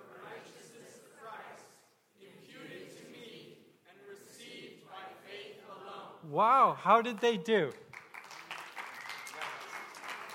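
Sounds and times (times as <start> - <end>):
speech: 6.3 - 7.8
audience applause: 7.9 - 10.3.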